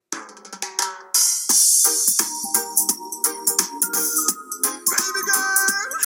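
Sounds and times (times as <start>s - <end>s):
90s music excerpt: 1.4s - 6.0s.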